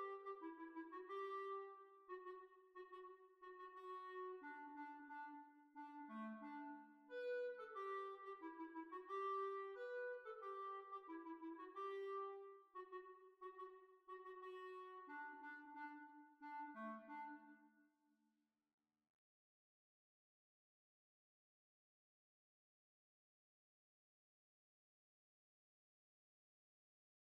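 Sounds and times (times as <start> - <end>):
hornpipe tune in B flat: 0.0 - 17.5.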